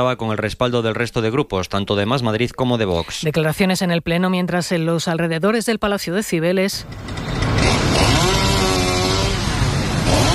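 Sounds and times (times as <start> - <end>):
speech: 0.0 - 7.4
outdoor noise: 0.0 - 10.3
chainsaw cutting trees: 6.9 - 10.3.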